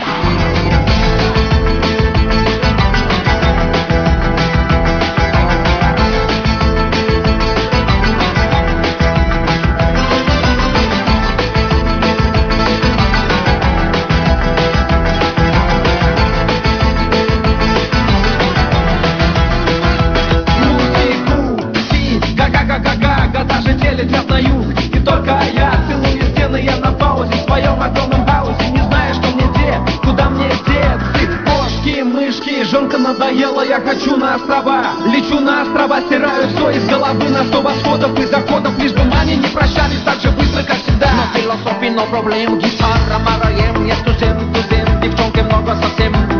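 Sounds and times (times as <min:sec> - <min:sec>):
Uzbek rock music: 0:00.0 - 0:46.3.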